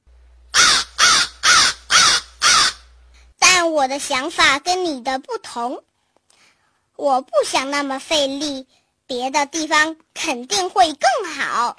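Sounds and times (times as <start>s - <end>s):
crow cawing: 0.5s - 2.9s
speech: 3.7s - 5.9s, 7.0s - 11.7s.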